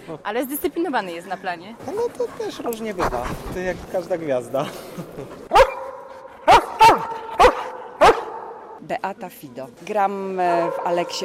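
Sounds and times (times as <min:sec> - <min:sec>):
speech: 0:00.1 - 0:05.6, 0:08.9 - 0:11.2
laughter: 0:04.4 - 0:05.6
dog barking: 0:05.5 - 0:08.8, 0:10.6 - 0:11.2.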